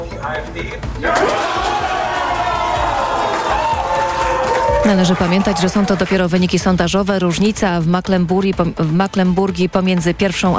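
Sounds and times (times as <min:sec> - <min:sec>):
speech: 0:00.2 - 0:01.7, 0:04.8 - 0:10.5
crowd cheering euphorically at election result: 0:01.0 - 0:06.5.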